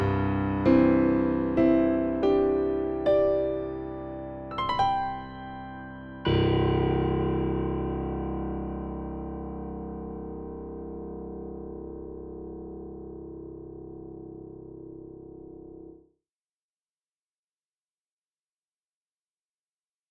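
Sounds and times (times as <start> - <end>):
acoustic piano improvisation: 0.0 - 16.0.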